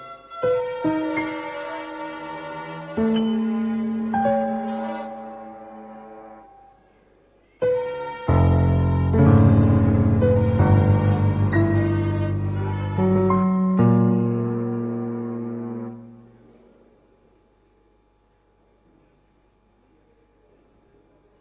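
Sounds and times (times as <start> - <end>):
domestic chamber music: 0.0 - 7.0, 7.6 - 16.6.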